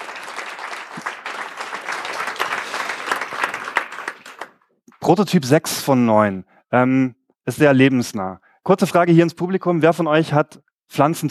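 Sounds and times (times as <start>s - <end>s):
audience applause: 0.0s - 4.6s
speech: 5.1s - 11.2s.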